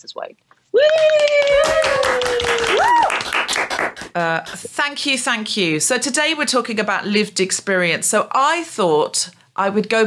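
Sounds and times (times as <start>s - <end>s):
speech: 0.0s - 1.7s, 4.2s - 10.0s
live comedy audience applause welcoming a comedian: 0.8s - 4.2s.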